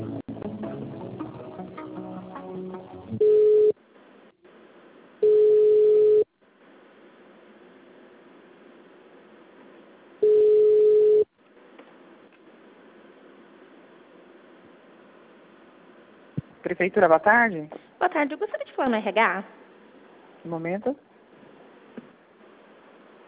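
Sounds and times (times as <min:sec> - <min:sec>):
telephone line beeps while a call to a municipal office is transferred: 0:03.2 - 0:03.7, 0:05.2 - 0:06.3, 0:10.2 - 0:11.3
speech: 0:16.8 - 0:19.6, 0:20.5 - 0:21.1.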